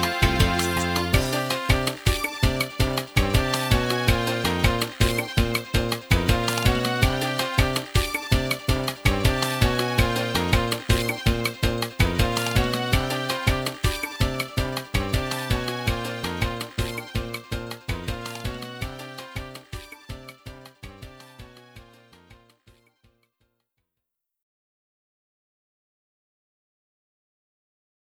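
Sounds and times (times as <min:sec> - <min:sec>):
melody: 0:00.0 - 0:21.3.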